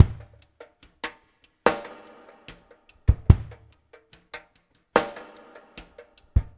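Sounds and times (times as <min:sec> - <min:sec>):
drums: 0:00.0 - 0:06.5.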